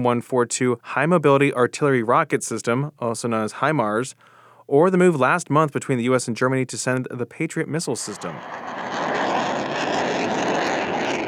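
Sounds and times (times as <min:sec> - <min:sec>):
speech: 0:00.0 - 0:09.1
F-16 Block 70 fighter jet engine roar on its first flight: 0:08.0 - 0:11.2.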